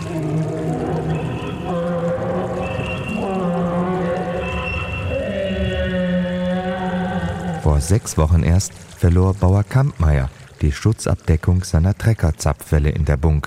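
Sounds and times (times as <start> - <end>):
mastodon weeping bitterly with mournful moans: 0.0 - 8.0
speech: 7.8 - 13.4.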